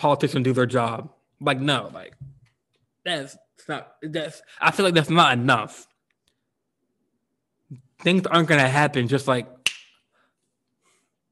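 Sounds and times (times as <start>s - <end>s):
speech: 0.0s - 2.3s, 3.0s - 5.9s, 7.7s - 9.6s
finger snap: 9.6s - 10.1s.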